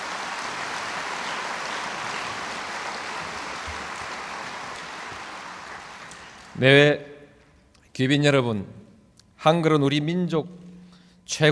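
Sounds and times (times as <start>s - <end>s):
audience applause: 0.0s - 6.6s
speech: 6.6s - 7.1s, 8.0s - 8.8s, 9.4s - 10.6s, 11.3s - 11.5s.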